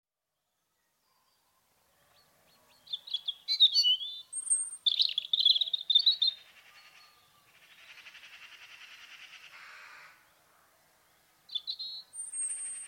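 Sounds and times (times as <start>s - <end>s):
robin song: 2.8s - 7.2s, 11.5s - 12.8s.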